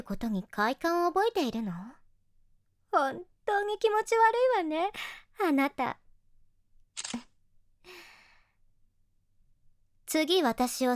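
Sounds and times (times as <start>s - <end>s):
speech: 0.0s - 2.0s, 2.9s - 6.0s, 10.1s - 10.9s
camera shutter taking a photo: 7.0s - 7.3s.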